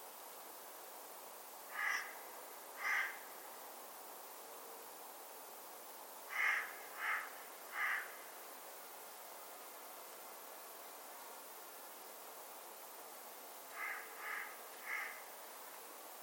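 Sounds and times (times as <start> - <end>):
bird cawing: 1.7 - 2.2, 2.8 - 3.2, 6.3 - 8.2, 13.7 - 15.3.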